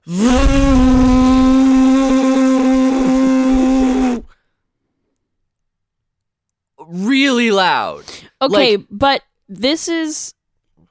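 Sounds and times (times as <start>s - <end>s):
voice imitating a drone's loud buzzing: 0.0s - 4.3s
speech: 0.1s - 0.7s, 7.7s - 10.4s.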